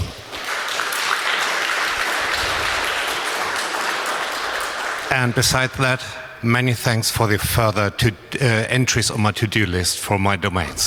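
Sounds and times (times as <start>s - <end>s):
audience applause after a talk: 0.0s - 6.2s
speech: 5.1s - 10.8s.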